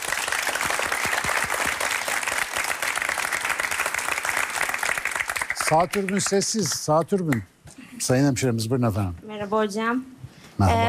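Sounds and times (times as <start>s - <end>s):
audience applause: 0.0s - 6.9s
speech: 5.7s - 10.8s.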